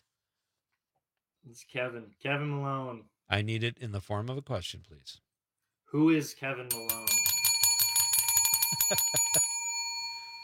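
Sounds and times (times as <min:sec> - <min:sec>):
speech: 0:01.5 - 0:05.2, 0:05.9 - 0:07.2, 0:08.8 - 0:09.5
bright bell ringing rapidly: 0:06.7 - 0:10.4.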